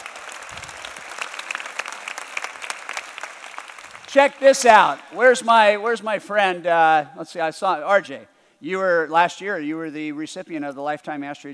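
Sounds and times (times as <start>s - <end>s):
audience applause: 0.0s - 5.4s
speech: 4.1s - 11.5s.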